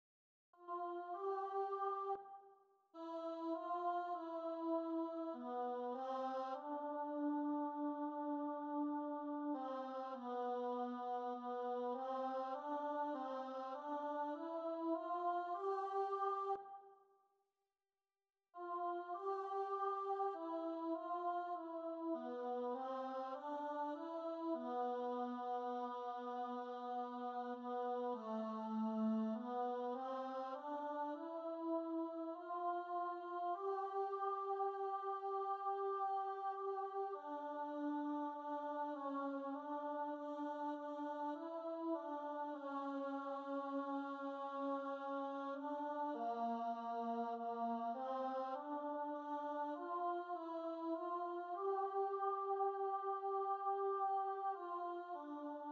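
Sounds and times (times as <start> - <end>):
choir singing: 0.6 - 2.4, 3.0 - 16.9, 18.6 - 55.6.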